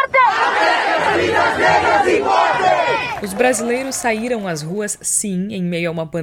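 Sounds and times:
crowd of protesters shouting and chanting: 0:00.0 - 0:04.1
speech: 0:03.2 - 0:06.2.

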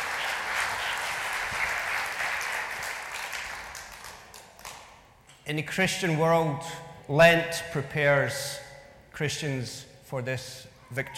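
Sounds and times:
audience applauding: 0:00.0 - 0:04.8
speech: 0:05.5 - 0:08.6, 0:09.2 - 0:11.1.

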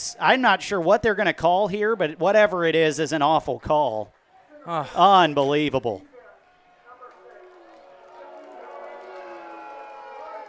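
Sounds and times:
speech: 0:00.0 - 0:06.1
stadium crowd booing: 0:06.3 - 0:10.4.

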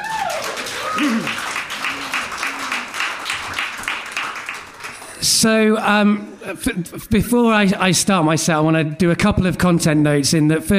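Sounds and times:
audience whoops and sliding whistle-like cheer: 0:00.0 - 0:02.9
audience clapping: 0:00.0 - 0:05.5
speech: 0:01.0 - 0:01.5, 0:05.4 - 0:10.7.

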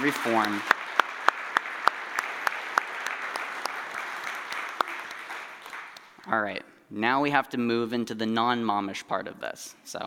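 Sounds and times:
speech: 0:00.0 - 0:00.8, 0:06.3 - 0:10.0
audience applauding: 0:00.0 - 0:06.4.

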